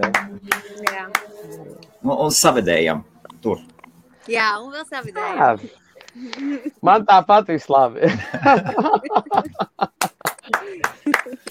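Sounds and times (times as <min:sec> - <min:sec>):
sharp hand claps: 0:00.0 - 0:01.4, 0:10.0 - 0:11.4
laughter: 0:00.0 - 0:01.9, 0:05.3 - 0:07.2, 0:08.0 - 0:11.4
speech: 0:00.0 - 0:09.9
faint steady low hum: 0:00.0 - 0:10.0.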